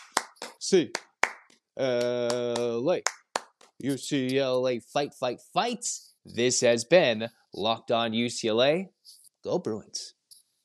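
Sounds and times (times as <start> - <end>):
hosts performing a clapping cheer: 0.0 - 4.4
speech: 0.6 - 1.0, 1.8 - 3.2, 3.8 - 10.2.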